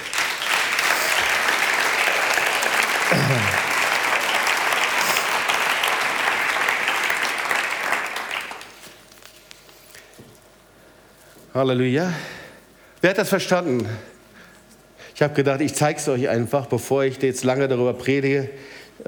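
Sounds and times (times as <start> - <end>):
audience applause: 0.0 - 8.8
speech: 11.6 - 12.4, 13.0 - 14.1, 15.2 - 19.0.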